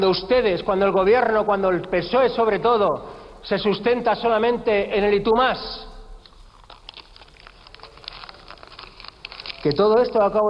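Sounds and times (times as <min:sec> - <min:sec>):
speech: 0:00.0 - 0:05.9, 0:09.6 - 0:10.4
paper being crumpled in the hands: 0:06.2 - 0:10.4.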